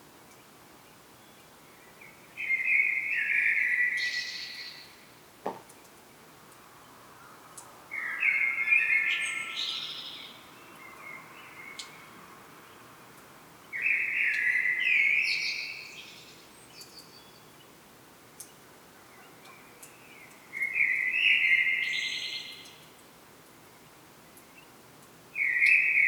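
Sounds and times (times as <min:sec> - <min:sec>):
common blackbird song: 0:00.3 - 0:06.2, 0:06.8 - 0:12.9, 0:13.6 - 0:17.8, 0:18.4 - 0:23.0, 0:23.7 - 0:26.0
short tap: 0:05.4 - 0:05.7.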